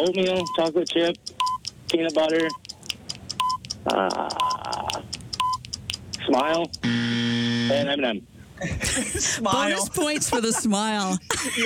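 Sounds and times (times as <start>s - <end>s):
speech: 0.0s - 2.6s, 3.8s - 4.8s, 6.3s - 11.6s
game timer electronic beeps: 0.0s - 7.9s
faint repeating clock clicks: 0.3s - 6.9s
laughter: 8.6s - 11.6s.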